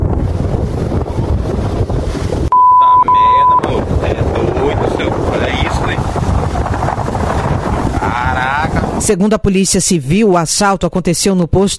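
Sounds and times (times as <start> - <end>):
strong wind by a ravine in São José de Ribamar buffeting microphone: 0.0 - 9.2
speech: 9.1 - 11.7.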